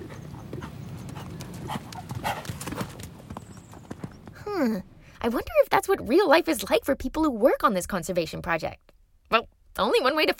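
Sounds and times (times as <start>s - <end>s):
horse hooves clip-clopping on the plains: 0.0s - 4.5s
speech: 4.6s - 10.3s.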